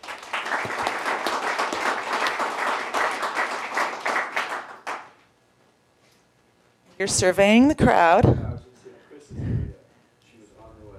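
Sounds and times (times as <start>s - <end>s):
group clapping: 0.0s - 5.3s
speech: 7.0s - 8.5s.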